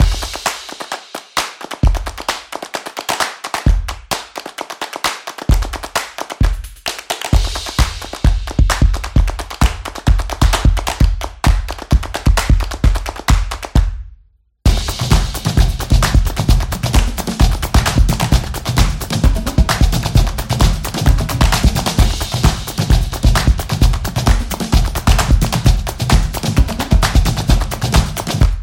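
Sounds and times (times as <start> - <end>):
hand claps: 0.0 - 14.0, 14.8 - 28.6.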